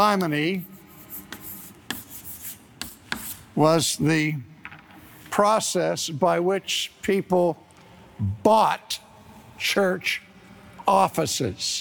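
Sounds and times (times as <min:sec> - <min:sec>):
speech: 0:00.0 - 0:00.7, 0:03.6 - 0:04.5, 0:05.4 - 0:07.6, 0:08.2 - 0:09.0, 0:09.6 - 0:10.2, 0:10.9 - 0:11.7
writing on a board during a lecture: 0:00.6 - 0:03.6.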